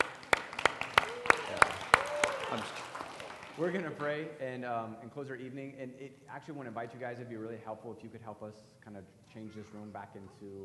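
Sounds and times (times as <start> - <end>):
group clapping: 0.0 - 4.0
speech: 2.5 - 2.8, 3.6 - 10.6.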